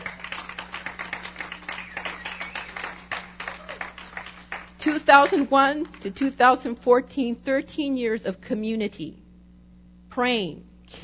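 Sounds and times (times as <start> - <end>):
audience clapping: 0.0 - 6.4
speech: 4.8 - 9.2, 10.2 - 11.0.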